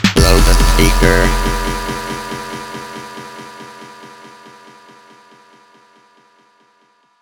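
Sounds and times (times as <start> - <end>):
robotic vocoder voice: 0.2 - 1.6.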